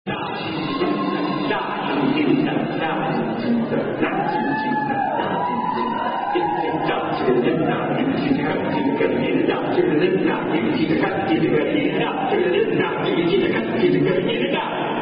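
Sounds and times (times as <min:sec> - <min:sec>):
crowd chanting: 0:00.1 - 0:15.0.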